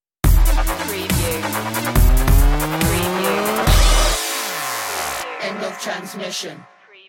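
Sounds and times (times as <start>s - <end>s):
beats stinger: 1.4s - 4.5s.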